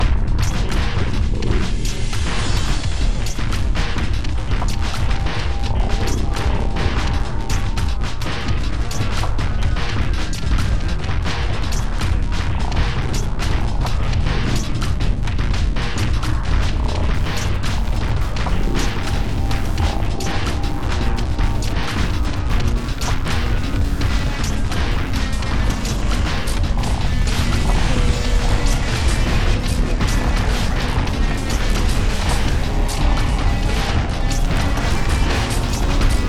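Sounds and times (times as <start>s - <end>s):
soundscape: 0.0s - 36.2s.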